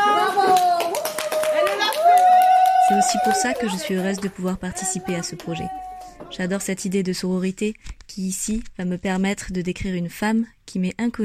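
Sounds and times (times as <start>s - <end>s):
audience applause: 0.0s - 6.3s
speech: 3.0s - 11.2s.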